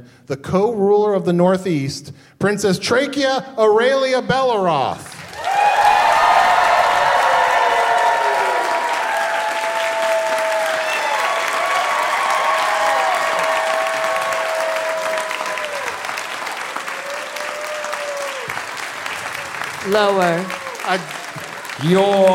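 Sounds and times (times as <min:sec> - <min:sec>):
speech: 0:00.0 - 0:05.8, 0:19.9 - 0:21.2, 0:21.8 - 0:22.3
crowd cheering and applauding: 0:05.1 - 0:22.3.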